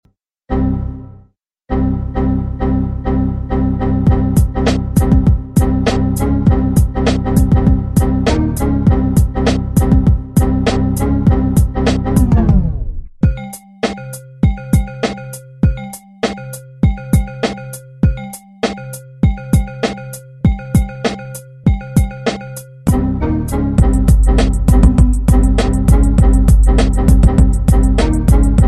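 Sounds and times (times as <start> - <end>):
Windows music: 0.5 - 28.6.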